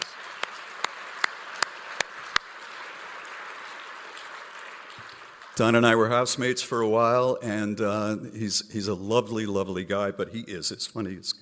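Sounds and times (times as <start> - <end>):
round of applause: 0.0 - 6.2
speech: 5.6 - 11.4.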